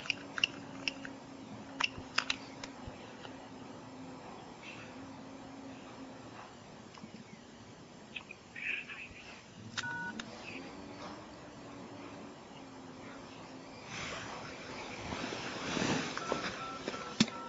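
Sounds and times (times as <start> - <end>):
low hum and hiss: 0.0 - 17.4
phone keypad tones while dialing to call in: 9.8 - 10.2, 16.2 - 17.4.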